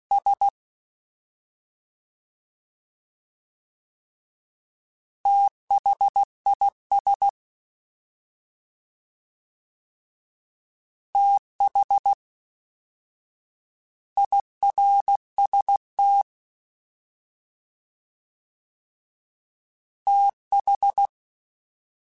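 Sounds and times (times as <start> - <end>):
fast CW Morse code groups: 0.1 - 0.5, 5.3 - 7.3, 11.2 - 12.2, 14.2 - 16.2, 20.1 - 21.1.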